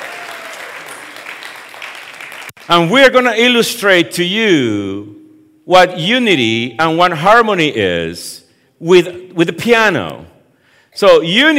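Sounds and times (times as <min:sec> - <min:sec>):
audience clapping: 0:00.0 - 0:02.8
speech: 0:02.7 - 0:10.3, 0:11.0 - 0:11.5.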